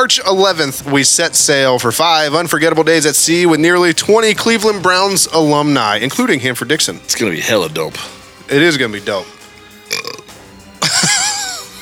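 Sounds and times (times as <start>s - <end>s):
speech: 0.0s - 9.4s
person belching: 9.8s - 11.0s
laughter: 10.8s - 11.8s.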